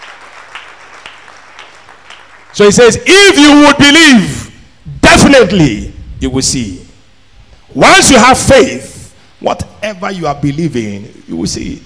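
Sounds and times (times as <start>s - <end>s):
crowd clapping: 0.0s - 2.7s
speech: 2.6s - 4.4s, 5.2s - 6.8s, 7.7s - 11.8s.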